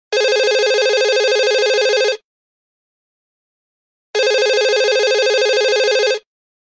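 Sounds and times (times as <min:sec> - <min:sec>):
new phone ringtone: 0:00.1 - 0:02.2, 0:04.2 - 0:06.3.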